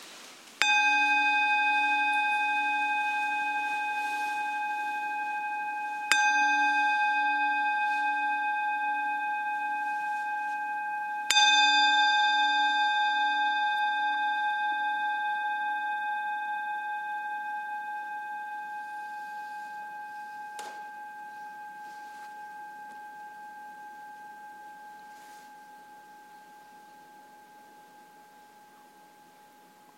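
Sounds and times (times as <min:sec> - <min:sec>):
meditation bell ringing in Shakujii, Nerima, Tokyo: 0:00.6 - 0:29.9.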